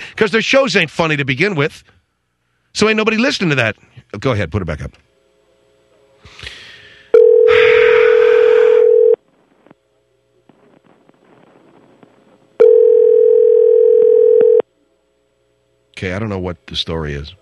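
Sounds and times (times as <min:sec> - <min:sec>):
speech: 0:00.2 - 0:02.0, 0:02.8 - 0:05.1, 0:16.0 - 0:17.4
telephone call ringback tones: 0:07.1 - 0:09.2, 0:12.6 - 0:14.6
faint rustling: 0:10.4 - 0:12.6.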